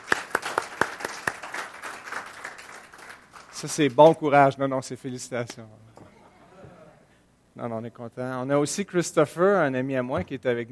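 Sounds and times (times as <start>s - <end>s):
audience applauding newlyweds: 0.0s - 3.6s
speech: 3.6s - 5.9s, 7.6s - 10.7s.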